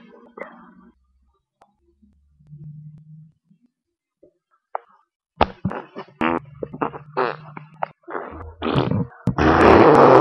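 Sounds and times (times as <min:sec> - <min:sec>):
fart: 0:05.4 - 0:10.1.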